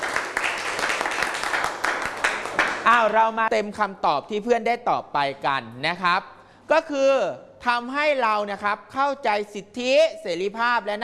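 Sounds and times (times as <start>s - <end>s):
classroom applause: 0.0s - 3.1s
speech: 2.9s - 11.0s.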